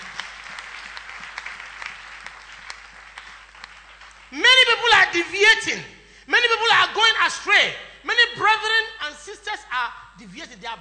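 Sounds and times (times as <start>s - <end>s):
audience clapping: 0.0s - 5.2s
speech: 5.1s - 10.7s.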